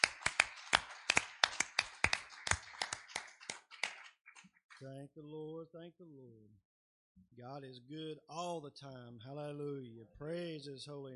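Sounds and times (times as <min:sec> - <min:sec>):
audience clapping hands in praise: 0:00.0 - 0:04.9
speech: 0:04.8 - 0:11.1.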